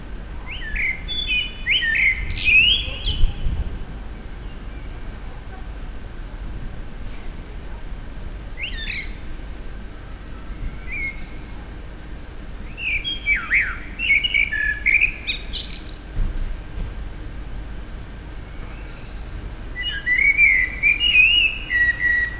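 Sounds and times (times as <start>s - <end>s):
common blackbird song: 0.4s - 5.2s, 8.6s - 9.5s, 10.1s - 11.6s, 12.6s - 16.2s, 16.9s - 22.3s.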